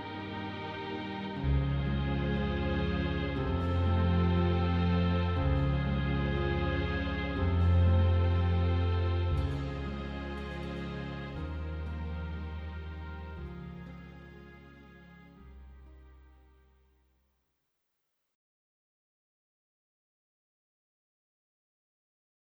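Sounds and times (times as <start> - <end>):
piano: 0.0 - 15.8.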